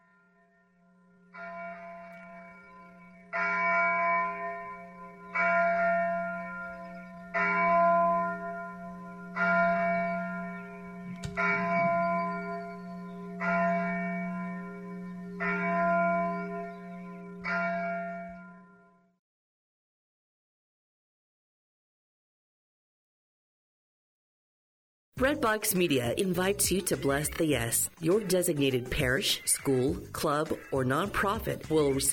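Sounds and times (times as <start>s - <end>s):
church bells ringing: 0.0s - 19.2s
speech: 25.4s - 32.1s.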